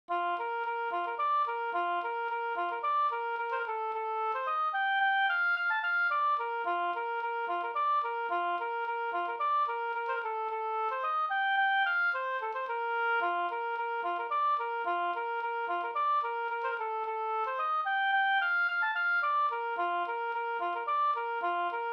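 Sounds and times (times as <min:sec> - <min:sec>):
slängpolska folk dance tune: 0:00.1 - 0:21.9.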